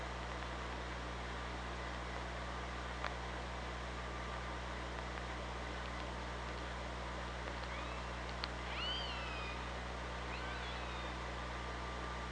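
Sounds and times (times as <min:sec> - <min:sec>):
steady low hum: 0:00.0 - 0:12.2
killer whale calls: 0:07.7 - 0:09.7, 0:10.3 - 0:11.4.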